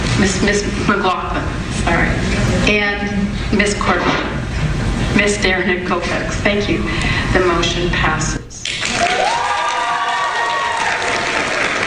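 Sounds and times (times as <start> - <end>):
speech: 0.2 - 4.4, 5.2 - 8.4
applause in meeting room: 8.6 - 11.8
group cheering and whooping in meeting room: 8.8 - 11.8.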